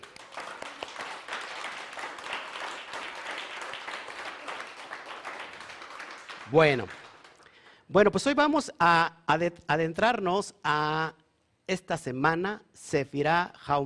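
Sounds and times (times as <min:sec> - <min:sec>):
crowd applause: 0:00.0 - 0:07.7
speech: 0:06.5 - 0:07.0, 0:07.9 - 0:13.8.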